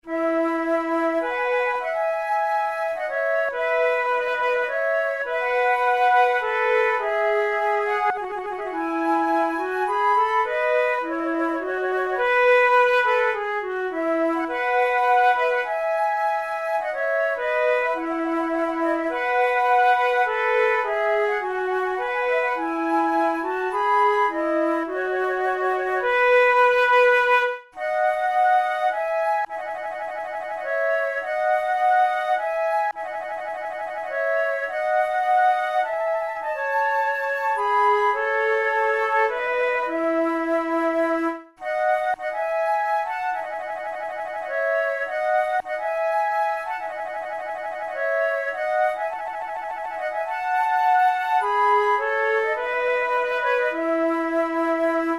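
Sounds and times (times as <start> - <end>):
two flutes playing minuets: 0.0 - 55.1.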